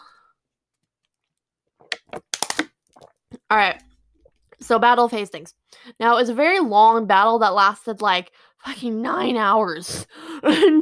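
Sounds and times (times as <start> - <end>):
person taking a drink of water: 1.7 - 4.6
speech: 3.5 - 3.8, 4.7 - 10.7.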